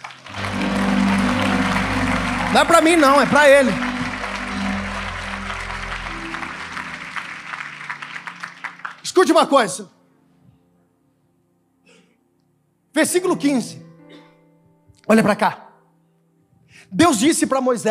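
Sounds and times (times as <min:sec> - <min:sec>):
audience applause: 0:00.0 - 0:09.4
speech: 0:02.5 - 0:03.8, 0:09.2 - 0:10.0, 0:13.0 - 0:13.8, 0:15.1 - 0:15.6, 0:16.8 - 0:17.8.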